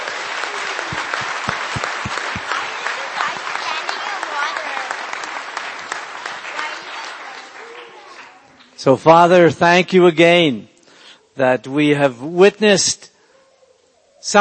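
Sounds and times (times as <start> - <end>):
audience applause: 0.0 - 8.5
speech: 8.8 - 10.7, 11.4 - 13.1, 14.2 - 14.4.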